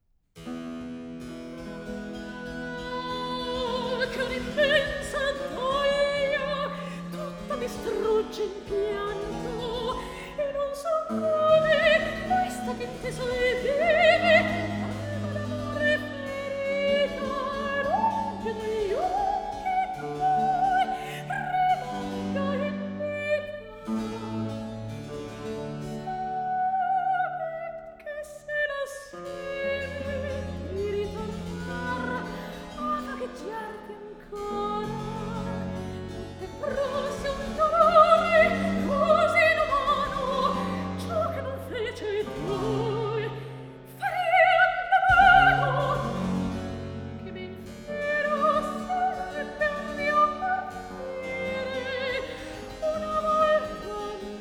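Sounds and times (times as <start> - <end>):
cantata recitative: 1.5 - 54.3.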